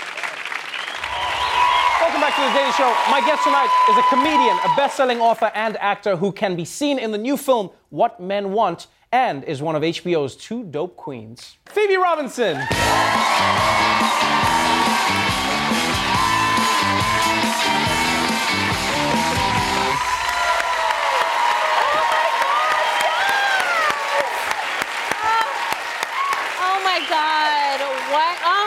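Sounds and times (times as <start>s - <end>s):
late-night comedy talk show studio audience cheering and applauding in a standing ovation: 0.0s - 5.5s, 12.6s - 28.6s
speech: 2.3s - 15.6s.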